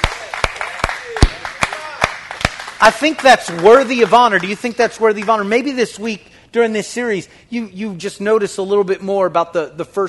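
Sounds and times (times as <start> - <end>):
audience clapping for first responders: 0.0 - 5.7
speech: 2.8 - 10.0.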